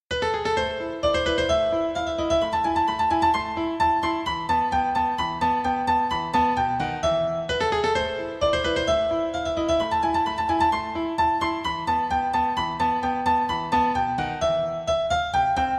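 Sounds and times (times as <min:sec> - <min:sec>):
piano piece: 0:00.1 - 0:15.7.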